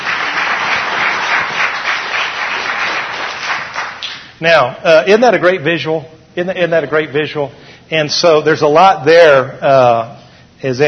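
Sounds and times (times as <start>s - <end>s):
audience applause: 0.0s - 4.1s
speech: 4.4s - 10.8s.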